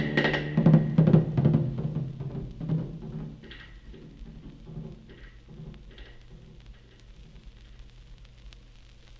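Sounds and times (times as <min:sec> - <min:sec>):
samba music: 0:00.0 - 0:03.1.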